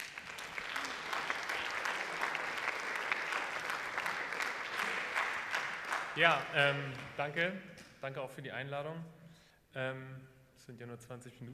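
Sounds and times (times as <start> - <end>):
audience applause: 0.0 - 7.2
speech: 6.2 - 9.2, 9.8 - 11.5.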